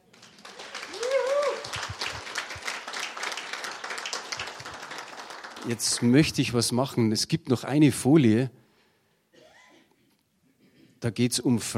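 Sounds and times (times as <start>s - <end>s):
audience applause: 0.0s - 6.3s
speech: 5.6s - 8.6s, 11.0s - 11.7s.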